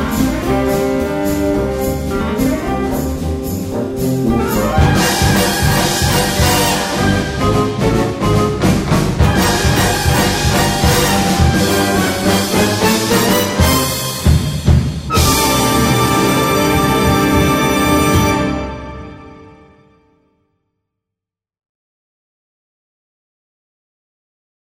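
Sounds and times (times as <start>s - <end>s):
fast swing music: 0.0s - 18.9s.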